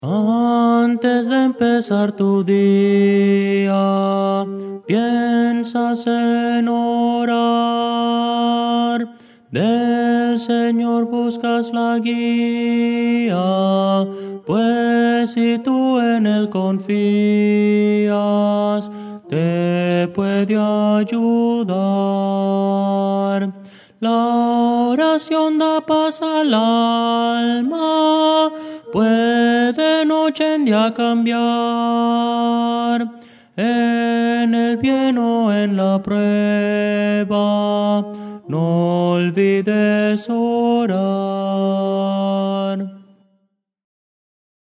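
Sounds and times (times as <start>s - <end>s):
tenor singing: 0.0s - 43.1s.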